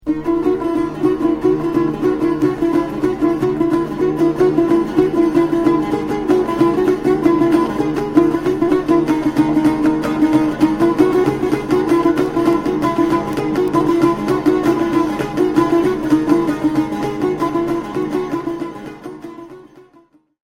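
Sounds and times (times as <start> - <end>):
tanbur playing: 0.0 - 20.2.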